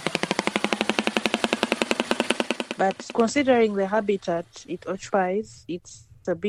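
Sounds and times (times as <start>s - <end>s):
papyrus bird machine-gun-like call in Uganda: 0.0s - 3.3s
speech: 2.8s - 6.4s.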